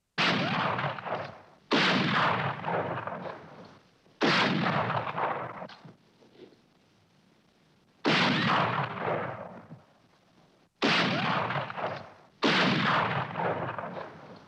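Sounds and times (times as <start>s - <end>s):
classic western rifle: 0.2s - 5.9s, 8.0s - 9.9s, 10.8s - 14.4s.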